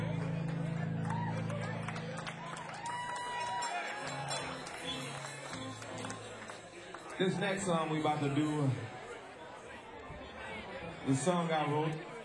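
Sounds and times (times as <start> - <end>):
audience applause: 0.0 - 9.0
speech: 7.2 - 8.9, 11.1 - 12.1.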